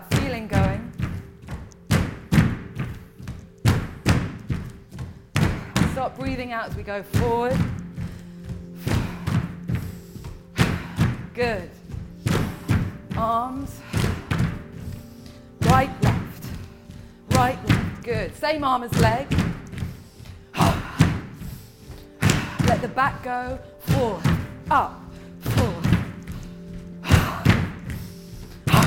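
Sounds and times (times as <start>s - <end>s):
person talking and giving instructions: 0.0s - 0.9s, 11.3s - 11.8s, 15.6s - 16.4s, 17.3s - 19.3s, 22.6s - 26.0s
feet stamping on a floor: 0.0s - 28.8s
speech: 6.0s - 7.8s, 11.4s - 11.8s, 13.2s - 13.8s, 17.4s - 19.4s, 22.8s - 25.0s.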